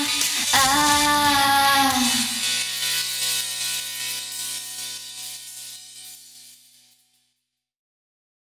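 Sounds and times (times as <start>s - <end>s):
a cappella singing: 0.0s - 2.5s.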